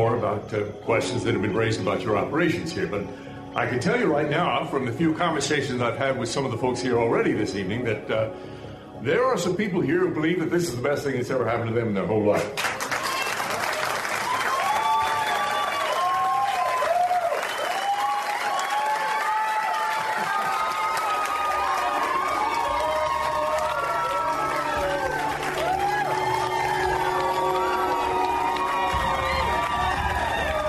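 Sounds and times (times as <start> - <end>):
speech: 0.0 - 12.9
fake overenthusiastic applause and cheering: 12.4 - 30.6.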